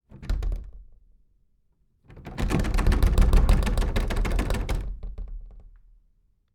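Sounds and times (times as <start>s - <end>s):
wooden door rattling: 0.0s - 1.0s, 2.1s - 5.9s.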